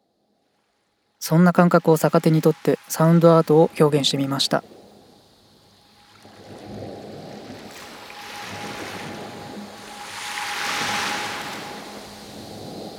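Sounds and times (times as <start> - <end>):
waves on a sandy beach: 1.2 - 12.9
speech: 1.3 - 4.8.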